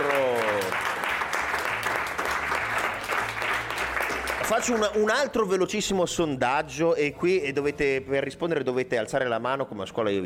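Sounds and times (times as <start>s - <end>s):
audience applause: 0.0s - 5.1s
speech: 4.5s - 10.2s.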